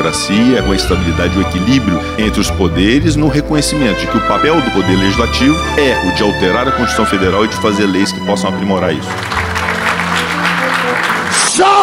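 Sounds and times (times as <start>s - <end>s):
speech: 0.0s - 9.6s
audience applause: 3.5s - 11.8s.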